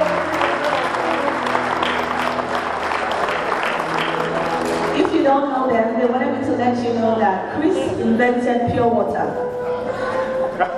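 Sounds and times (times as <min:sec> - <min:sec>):
audience applause: 0:00.0 - 0:05.1
speech: 0:05.4 - 0:09.7.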